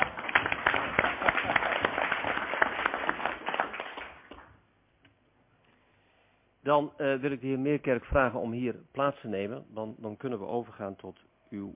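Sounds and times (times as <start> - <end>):
applause: 0.0 - 4.6
speech: 6.7 - 11.7.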